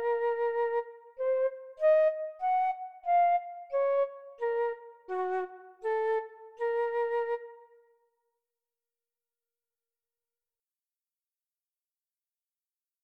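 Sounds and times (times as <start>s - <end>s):
solo flute: 0.0s - 8.0s.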